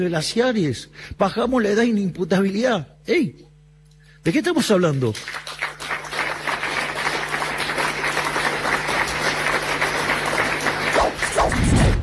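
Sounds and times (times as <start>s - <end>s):
speech: 0.0s - 3.5s, 4.2s - 5.6s
audience applause: 5.0s - 12.0s.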